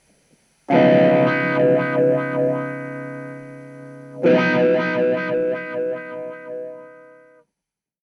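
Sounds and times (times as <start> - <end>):
buffer wah effect: 0.7 - 7.3.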